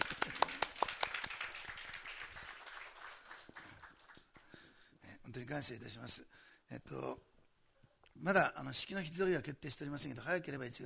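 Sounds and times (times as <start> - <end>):
audience clapping: 0.0 - 4.7
speech: 5.4 - 7.3, 8.2 - 10.8.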